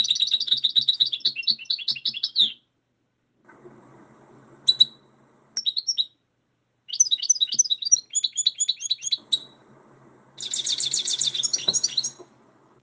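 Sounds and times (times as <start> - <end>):
goldfinches twittering: 0.0 - 2.6, 4.7 - 5.0, 5.6 - 6.2, 6.9 - 9.6, 10.4 - 12.3.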